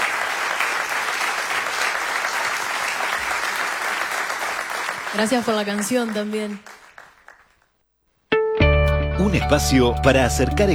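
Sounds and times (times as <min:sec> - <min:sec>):
audience applause: 0:00.0 - 0:07.6
speech: 0:05.2 - 0:06.7, 0:09.2 - 0:10.7.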